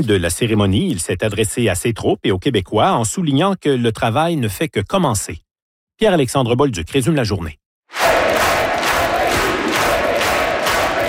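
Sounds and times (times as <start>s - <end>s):
speech: 0.0s - 5.4s, 6.0s - 7.6s
crowd cheering and acclaiming: 7.9s - 11.0s.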